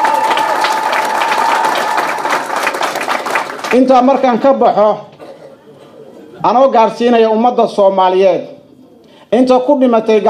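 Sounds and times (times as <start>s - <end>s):
rapid dense clapping at a Somali gathering: 0.0s - 4.5s
speech: 3.7s - 5.1s, 6.4s - 8.5s, 9.3s - 10.2s.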